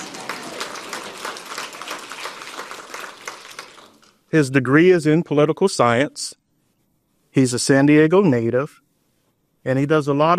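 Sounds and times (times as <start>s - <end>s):
audience clapping: 0.0s - 4.3s
speech: 4.3s - 6.4s, 7.4s - 8.8s, 9.6s - 10.3s.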